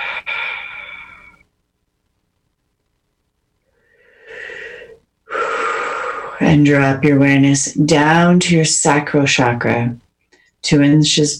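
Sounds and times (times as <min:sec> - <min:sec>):
deep breathing during a guided meditation: 0:00.0 - 0:01.5, 0:03.6 - 0:06.5
speech: 0:06.4 - 0:10.0, 0:10.6 - 0:11.3.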